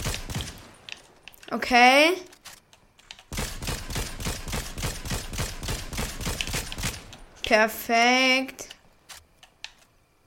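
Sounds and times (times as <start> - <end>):
rapid gunfire in the video game Fortnite: 0.0 - 0.9, 3.3 - 7.4
speech: 1.5 - 2.3, 7.5 - 8.7.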